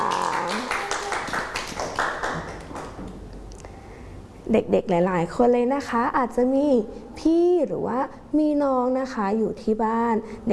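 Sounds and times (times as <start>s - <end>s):
children clapping: 0.0s - 3.0s
speech: 4.5s - 10.5s.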